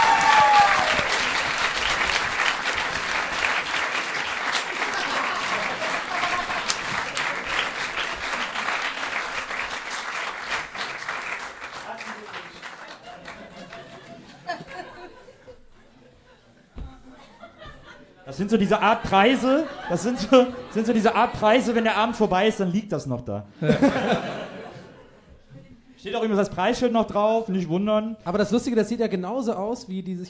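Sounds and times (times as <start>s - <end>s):
audience applause: 0.0s - 14.6s
people laughing: 2.7s - 9.2s, 12.8s - 22.4s, 23.5s - 25.8s
speech: 18.4s - 24.4s, 26.2s - 30.2s.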